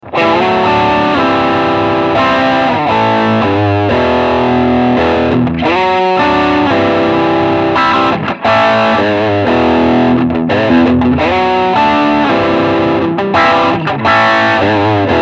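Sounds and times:
full drive guitar riff: 0.0 - 15.2.

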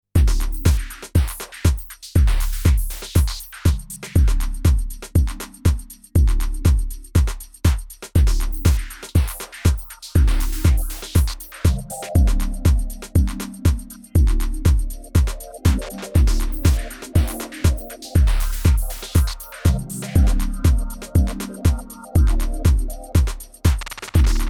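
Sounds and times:
Korg drumlogue drum machine beat: 0.2 - 24.4.

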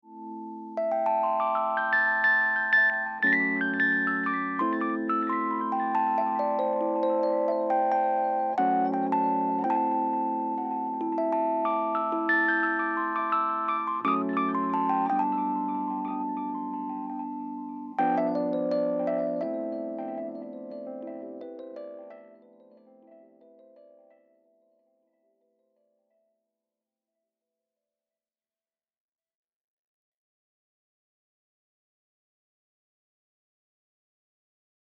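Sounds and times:
Rhodes electric piano: 0.1 - 24.6.

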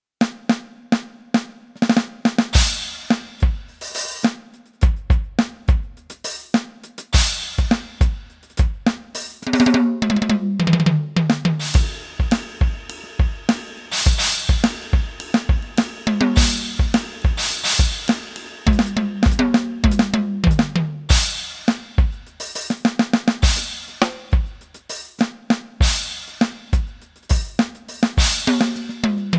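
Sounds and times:
Alesis Nitro Max electronic drum kit funky beat: 1.8 - 29.3.

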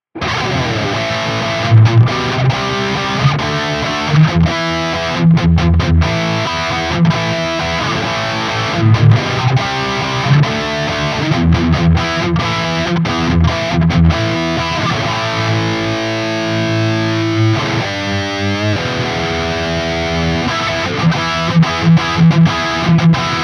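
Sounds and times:
Ibanez QX54QM electric guitar high-gain rhythm through SLO amp: 0.2 - 23.4.

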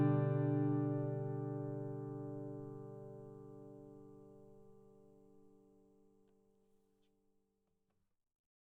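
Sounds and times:
guitar recorded with a Telefunken M60 cardioid microphone: 0.0 - 6.2.

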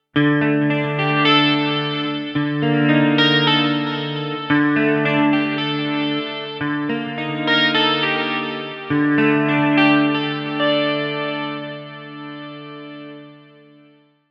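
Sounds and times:
Kurzweil PC4 guitar sound: 0.0 - 14.0.

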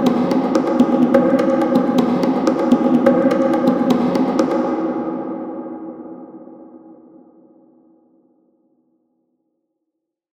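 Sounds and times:
percussion loop: 0.0 - 5.1.

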